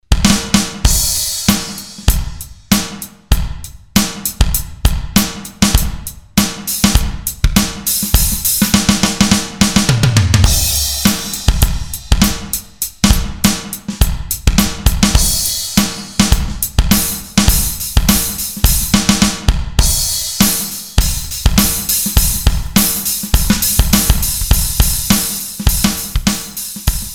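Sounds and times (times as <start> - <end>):
electronic drums: 0.0 - 27.1.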